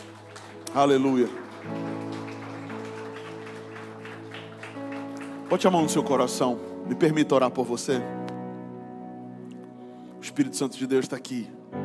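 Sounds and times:
audience standing and applauding loudly: 0:00.0 - 0:06.2
speech: 0:00.7 - 0:01.9, 0:05.5 - 0:08.3, 0:10.4 - 0:11.7.

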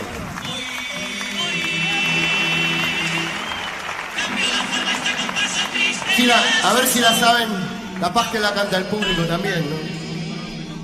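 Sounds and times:
audience applause: 0:00.0 - 0:08.4
speech: 0:06.2 - 0:10.0.

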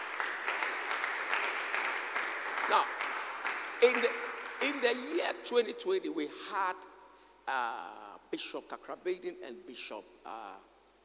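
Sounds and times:
audience clapping hands: 0:00.0 - 0:05.4
speech: 0:02.7 - 0:03.0, 0:03.8 - 0:10.7.

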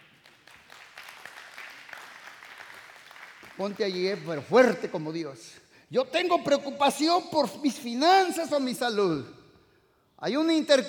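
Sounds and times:
audience applause: 0:00.0 - 0:04.4
speech: 0:03.6 - 0:09.4, 0:10.2 - 0:10.8.

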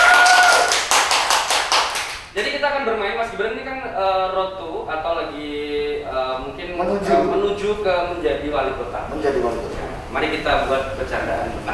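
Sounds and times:
hand clapping: 0:00.0 - 0:02.3
speech: 0:03.2 - 0:11.7.

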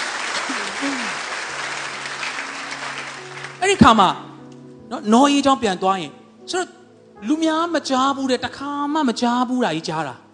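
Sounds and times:
church congregation clapping in praise during a Sunday sermon: 0:00.0 - 0:04.2
speech: 0:03.6 - 0:04.2, 0:04.9 - 0:10.2.

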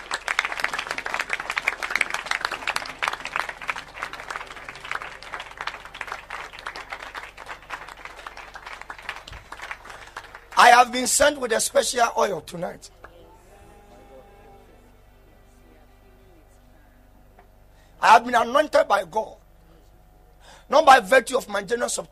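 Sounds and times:
crowd clapping hands: 0:00.0 - 0:11.9
speech: 0:10.8 - 0:13.0, 0:18.1 - 0:19.4, 0:20.7 - 0:22.1.

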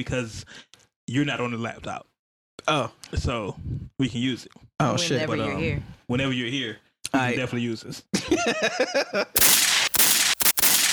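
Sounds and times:
speech: 0:00.0 - 0:09.6
gunfire in a video game: 0:09.4 - 0:10.9.

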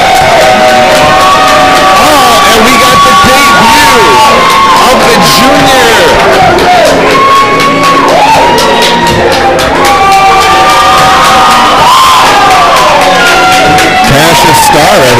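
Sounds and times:
wrestling crowd cheering: 0:00.0 - 0:15.1.

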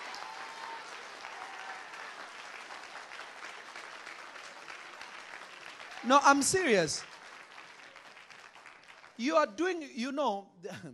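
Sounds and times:
audience clapping: 0:00.0 - 0:09.8
speech: 0:06.0 - 0:07.1, 0:09.2 - 0:10.9.

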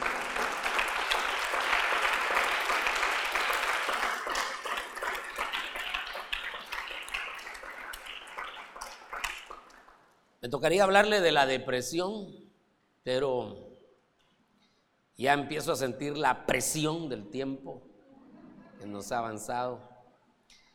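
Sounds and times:
audience applause: 0:00.0 - 0:10.1
speech: 0:10.5 - 0:12.4, 0:13.0 - 0:13.7, 0:15.2 - 0:17.9, 0:18.8 - 0:19.9.

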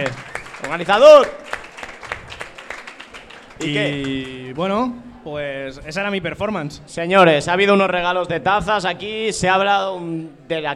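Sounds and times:
speech: 0:00.0 - 0:01.4, 0:03.6 - 0:10.7
audience applause: 0:00.0 - 0:04.7.

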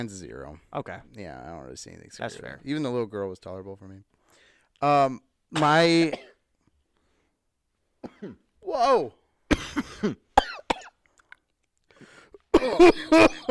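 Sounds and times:
speech: 0:00.0 - 0:04.2, 0:04.8 - 0:06.3, 0:08.2 - 0:09.2, 0:09.8 - 0:10.2, 0:12.6 - 0:13.4
forced cough: 0:05.6 - 0:06.4, 0:08.0 - 0:08.5, 0:09.5 - 0:11.0, 0:12.5 - 0:13.4.

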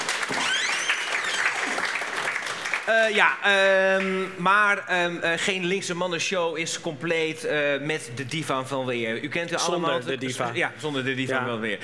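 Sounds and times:
audience applause: 0:00.0 - 0:04.2
speech: 0:02.9 - 0:11.8.

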